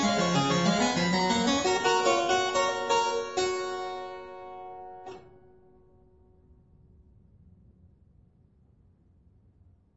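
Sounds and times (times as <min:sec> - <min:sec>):
keyboard fughetta for one clavier: 0:00.0 - 0:05.3.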